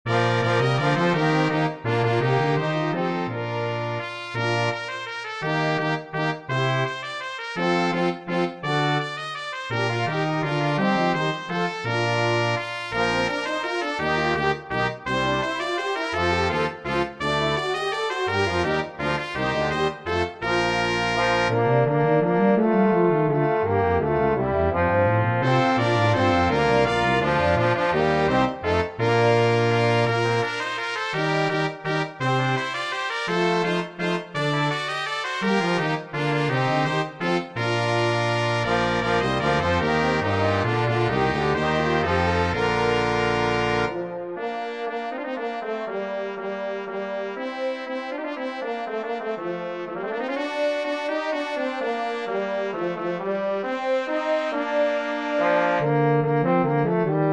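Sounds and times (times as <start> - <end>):
brass quintet playing variations: 0.1 - 57.3.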